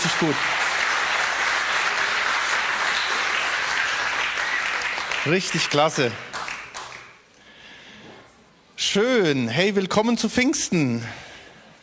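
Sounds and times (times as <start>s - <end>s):
audience applause: 0.0s - 7.2s
speech: 0.2s - 0.6s, 5.2s - 6.3s, 8.9s - 11.3s.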